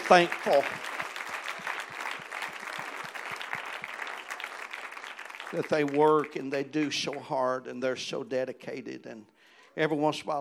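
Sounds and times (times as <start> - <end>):
church congregation applauding the praise team: 0.0 - 7.4
speech: 0.1 - 0.9, 5.5 - 10.3.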